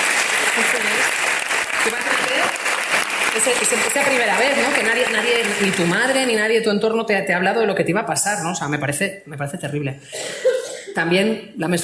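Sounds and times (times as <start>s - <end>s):
audience applause: 0.0s - 6.5s
speech: 0.6s - 1.2s, 1.8s - 2.7s, 3.4s - 11.8s.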